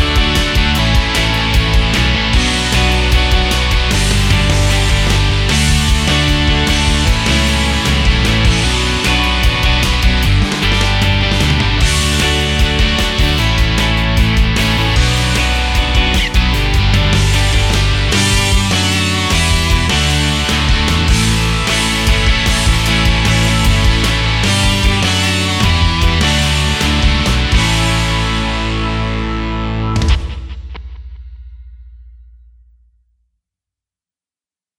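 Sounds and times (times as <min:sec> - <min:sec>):
rock style accompaniment on a Korg Pa4X keyboard: 0:00.0 - 0:31.2.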